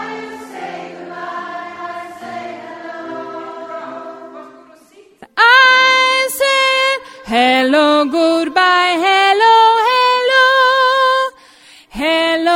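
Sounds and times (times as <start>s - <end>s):
soprano voice: 3.6s - 12.5s.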